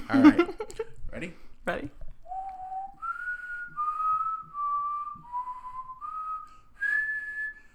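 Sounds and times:
speech: 0:00.1 - 0:00.4, 0:01.2 - 0:02.0
person whistling a song melody: 0:02.3 - 0:07.7.

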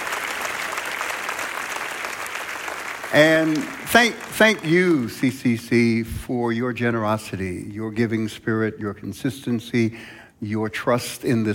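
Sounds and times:
audience applause: 0:00.0 - 0:05.2
speech: 0:03.1 - 0:11.5.

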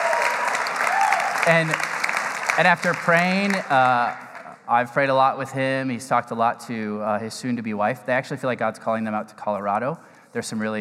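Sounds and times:
audience applause: 0:00.0 - 0:04.6
speech: 0:01.4 - 0:01.9, 0:02.6 - 0:10.7.

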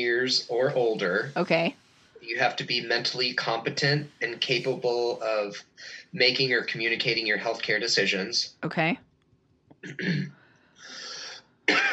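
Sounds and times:
laughter: 0:00.0 - 0:01.3, 0:02.3 - 0:08.4, 0:09.9 - 0:10.2, 0:11.0 - 0:11.9
speech: 0:00.0 - 0:09.1, 0:09.8 - 0:11.0, 0:11.7 - 0:11.9
person coughing after aspirating spit: 0:09.8 - 0:10.3, 0:11.0 - 0:11.9.

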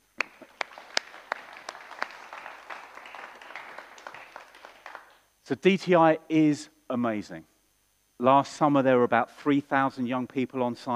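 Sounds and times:
audience applause: 0:00.0 - 0:05.2
speech: 0:05.5 - 0:07.5, 0:08.2 - 0:10.9.

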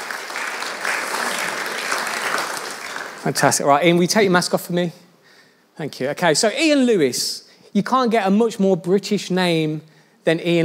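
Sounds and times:
audience round of applause: 0:00.0 - 0:03.6
speech: 0:03.2 - 0:05.0, 0:05.8 - 0:10.6.

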